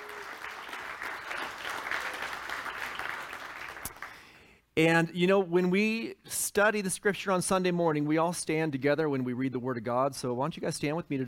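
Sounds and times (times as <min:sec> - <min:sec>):
crowd applauding: 0:00.0 - 0:04.3
speech: 0:04.8 - 0:11.2.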